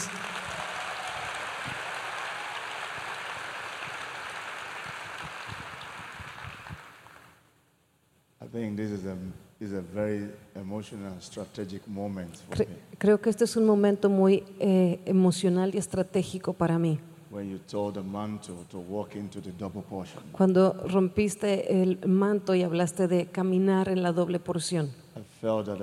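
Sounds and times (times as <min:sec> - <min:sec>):
audience applause: 0:00.0 - 0:07.4
speech: 0:08.5 - 0:25.8.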